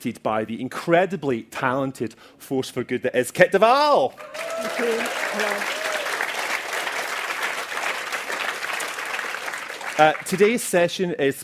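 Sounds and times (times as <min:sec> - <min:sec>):
speech: 0:00.0 - 0:05.9, 0:10.0 - 0:11.4
audience applause: 0:04.2 - 0:10.7.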